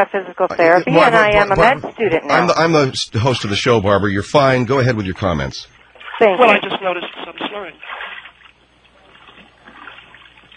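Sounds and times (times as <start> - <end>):
speech: 0.0 - 8.0
water splashing in a bathtub: 5.8 - 10.5.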